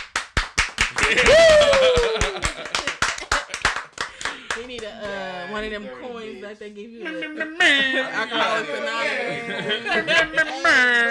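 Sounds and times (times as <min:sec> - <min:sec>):
clapping applause: 0:00.0 - 0:05.2
laughter: 0:00.9 - 0:03.9, 0:07.0 - 0:11.0
speech: 0:01.1 - 0:01.6, 0:04.6 - 0:11.0.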